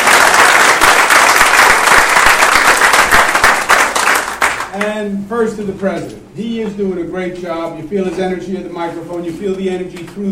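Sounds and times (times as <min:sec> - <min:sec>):
crowd applauding steadily: 0:00.0 - 0:04.8
speech: 0:05.1 - 0:10.3.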